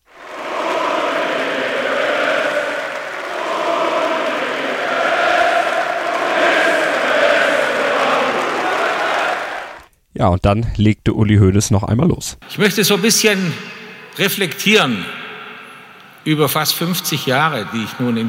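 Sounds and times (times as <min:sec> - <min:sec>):
murmur of cheering: 0:00.0 - 0:09.9
standing ovation applause from members: 0:00.0 - 0:09.9
speech: 0:10.2 - 0:15.2, 0:16.2 - 0:18.2.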